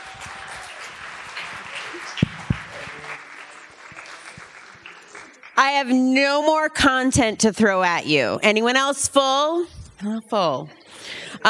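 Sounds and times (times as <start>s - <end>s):
audience applause for panelists: 0.0s - 5.6s
speech: 5.6s - 10.8s.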